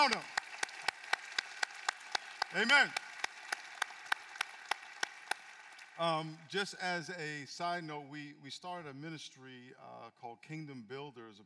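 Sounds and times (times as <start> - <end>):
speech: 0.0 - 0.4, 2.5 - 3.0, 6.0 - 11.4
audience round of applause in slow claps: 0.0 - 6.0.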